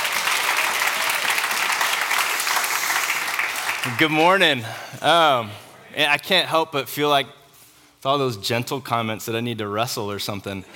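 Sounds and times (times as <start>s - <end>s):
audience clapping: 0.0s - 4.6s
speech: 3.9s - 7.4s, 8.0s - 10.7s.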